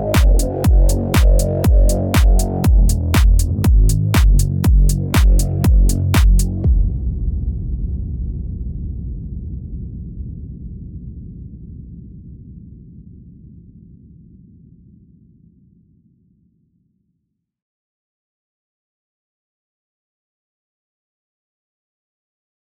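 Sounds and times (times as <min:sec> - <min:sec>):
biker film music: 0:00.0 - 0:06.9.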